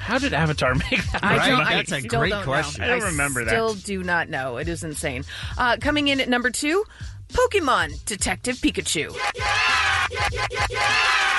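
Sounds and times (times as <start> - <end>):
speech: 0.1 - 10.8
laughter: 0.6 - 3.4
remixed crowd cheering sound effect: 9.2 - 11.3.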